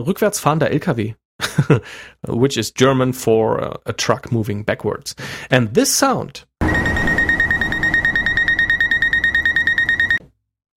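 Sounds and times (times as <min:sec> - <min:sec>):
speech: 0:00.0 - 0:06.5
traffic light signal beeping: 0:06.6 - 0:10.2.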